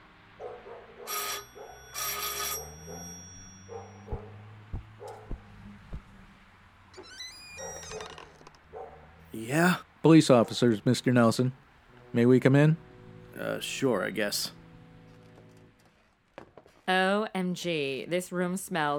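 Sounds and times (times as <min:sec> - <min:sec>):
doorbell ringing: 0:01.1 - 0:04.2
chiming tones: 0:01.2 - 0:04.3
speech: 0:09.4 - 0:14.6, 0:16.9 - 0:18.9.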